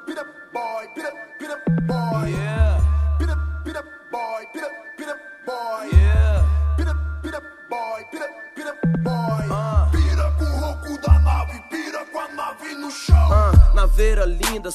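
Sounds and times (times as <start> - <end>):
bass: 1.8 - 3.8, 5.9 - 7.5, 9.0 - 11.6, 13.1 - 14.7.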